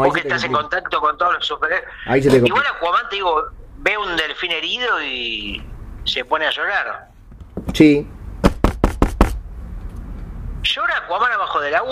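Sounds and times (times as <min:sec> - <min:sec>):
speech: 0:00.0 - 0:07.1, 0:07.7 - 0:08.2, 0:10.7 - 0:11.9
knocking on a door: 0:08.4 - 0:09.4.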